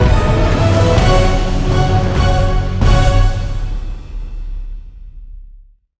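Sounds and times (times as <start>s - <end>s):
large win sound: 0.0s - 3.8s.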